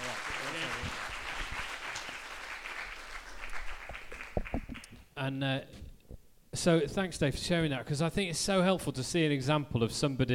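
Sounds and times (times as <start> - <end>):
round of applause: 0.0 - 5.0
speech: 5.2 - 5.8, 6.6 - 10.3.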